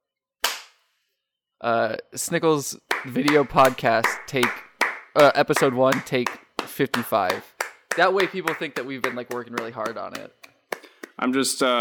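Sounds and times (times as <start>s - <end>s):
single hand clap as slate: 0.4s - 0.8s, 2.9s - 11.2s
speech: 1.6s - 10.4s, 11.2s - 11.8s.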